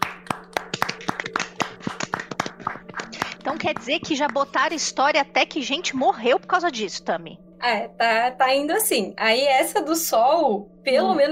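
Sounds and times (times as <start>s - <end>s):
clapping: 0.0s - 4.6s
speech: 3.6s - 11.2s.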